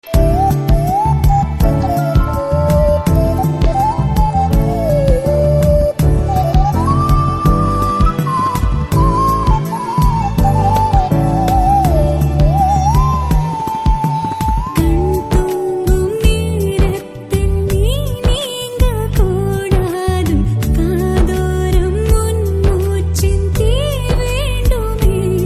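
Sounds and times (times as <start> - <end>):
background music: 0.0 - 25.4.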